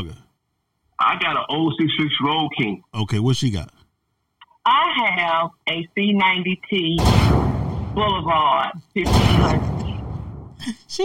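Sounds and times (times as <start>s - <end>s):
speech: 1.1s - 3.8s, 5.0s - 7.4s, 8.0s - 9.7s, 10.6s - 11.0s
gunshot sound effects: 7.0s - 8.4s, 9.0s - 10.6s.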